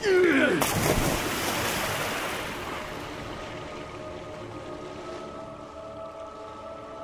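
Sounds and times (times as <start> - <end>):
heavy splash into the sea: 0.5 - 4.0
churning sea waves: 0.6 - 5.1.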